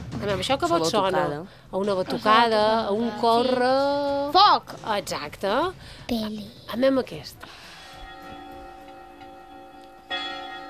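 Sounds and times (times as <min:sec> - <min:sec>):
speech: 0:00.2 - 0:07.6
church bells ringing: 0:07.7 - 0:10.6.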